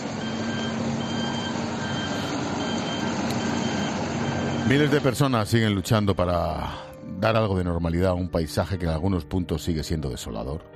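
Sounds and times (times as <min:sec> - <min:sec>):
heavy machinery clearing streets: 0:00.0 - 0:05.2
reversing beeps: 0:00.2 - 0:05.0
speech: 0:04.7 - 0:10.7.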